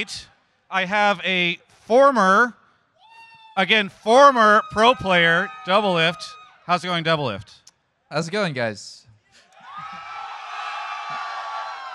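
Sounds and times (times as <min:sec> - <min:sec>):
large crowd cheering and roaring: 0:00.0 - 0:00.3, 0:03.1 - 0:06.5, 0:09.4 - 0:11.9
speech: 0:00.0 - 0:02.6, 0:03.6 - 0:09.0.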